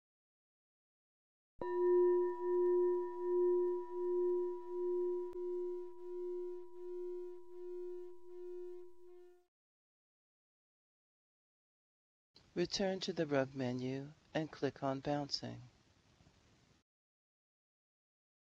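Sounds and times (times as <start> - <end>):
crystal being chimed: 1.6 - 9.4
speech: 12.6 - 15.7.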